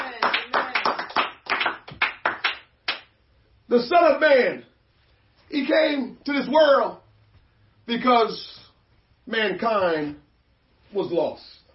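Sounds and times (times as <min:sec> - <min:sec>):
audience clapping hands: 0:00.0 - 0:03.1
speech: 0:03.7 - 0:04.7, 0:05.5 - 0:07.0, 0:07.9 - 0:08.6, 0:09.3 - 0:10.2, 0:10.9 - 0:11.6.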